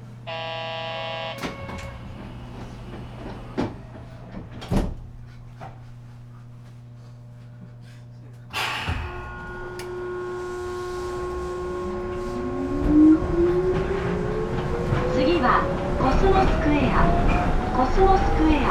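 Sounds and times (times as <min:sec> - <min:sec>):
low steady hum of a train at a platform: 0:01.4 - 0:18.7
sharp clunk of a departing train: 0:08.5 - 0:10.0.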